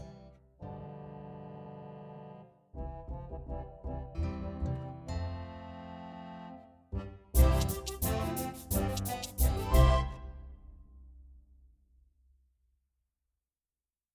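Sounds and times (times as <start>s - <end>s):
piano: 2.9s - 6.3s, 7.0s - 10.6s.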